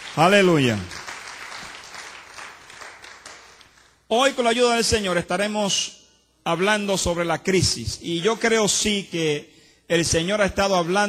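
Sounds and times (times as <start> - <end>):
church congregation applause during a Spanish-language service: 0.0 - 4.0
speech: 0.2 - 1.0, 4.1 - 11.0.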